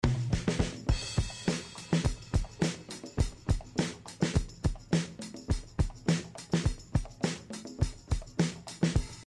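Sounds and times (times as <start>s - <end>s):
percussion: 0.0s - 9.2s.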